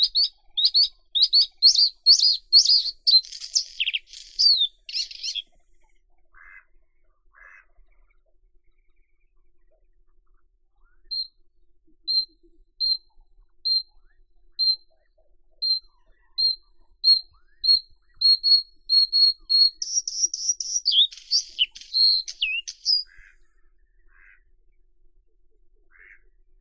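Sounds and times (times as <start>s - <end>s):
bluethroat Luscinia svecica: 0.1s - 5.4s, 18.2s - 23.0s.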